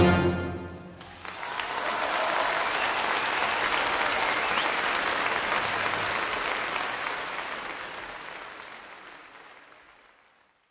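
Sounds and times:
music: 0.0 - 1.1
applause following music: 1.0 - 10.6.

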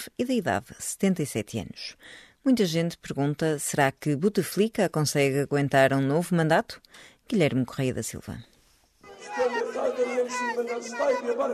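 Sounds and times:
speech: 0.1 - 8.5, 10.2 - 11.5
crowd of supporters chanting the candidate's name: 9.0 - 11.5.

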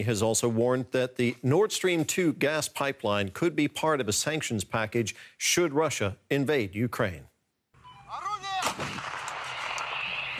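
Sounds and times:
speech: 0.0 - 7.3
artillery fire during military drills: 8.6 - 10.3.

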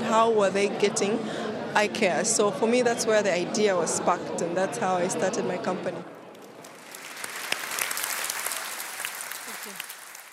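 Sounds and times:
speech: 0.1 - 6.2
friendly audience applause after a presentation: 6.4 - 10.3.

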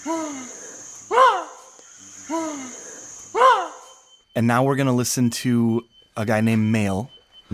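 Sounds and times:
speech: 0.0 - 1.2, 4.4 - 7.5
high-pitched insect whine: 0.0 - 7.5
chimpanzees giving startled alarm calls at a fake snake: 0.3 - 3.9.

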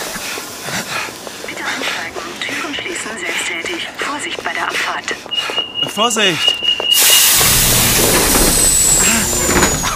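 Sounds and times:
steady rumble of station and subway train noise: 0.0 - 9.9
speech: 4.2 - 7.1, 8.0 - 8.4
thin high whine: 6.7 - 9.9
subway train doors sliding shut with a pneumatic hiss: 6.9 - 9.9.

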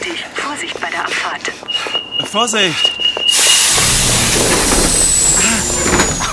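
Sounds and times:
speech: 0.2 - 3.4, 4.3 - 4.8
thin high whine: 3.1 - 6.3
subway train doors hissing shut: 3.2 - 6.3.

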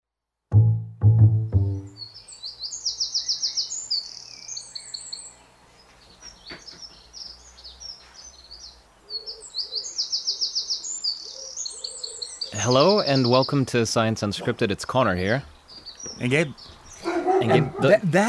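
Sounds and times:
birds singing in the early morning: 1.7 - 18.2
speech: 12.7 - 15.6, 16.2 - 16.8, 17.4 - 18.2
dog barking: 17.0 - 18.0.

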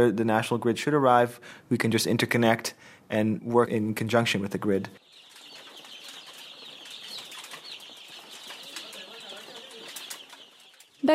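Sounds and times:
speech: 0.0 - 5.0
chicks peeping under solar-powered heat lamps in a village breeding setup: 5.0 - 11.1.

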